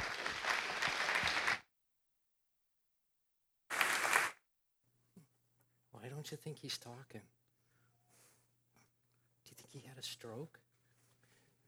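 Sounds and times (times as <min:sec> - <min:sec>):
audience applause at CCC welcoming a returning guest: 0:00.0 - 0:01.6, 0:03.7 - 0:04.4
speech: 0:06.2 - 0:07.4, 0:10.0 - 0:10.6.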